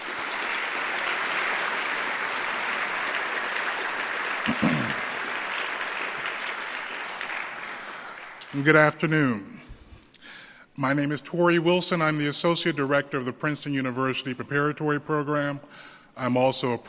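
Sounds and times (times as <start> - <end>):
audience applauding Journey Award winners at a Martin Luther King Day celebration: 0.0 - 9.4
speech: 8.5 - 9.6, 10.8 - 16.8.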